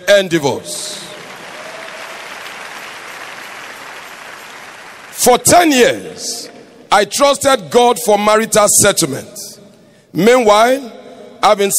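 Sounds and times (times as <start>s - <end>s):
speech: 0.0s - 1.1s, 5.2s - 9.4s, 10.1s - 11.7s
audience clapping: 0.9s - 5.6s.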